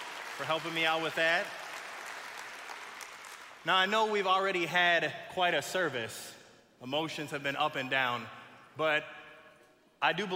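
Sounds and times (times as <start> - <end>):
audience applause: 0.0 - 3.6
speech: 0.4 - 1.6, 3.6 - 9.2, 10.0 - 10.3.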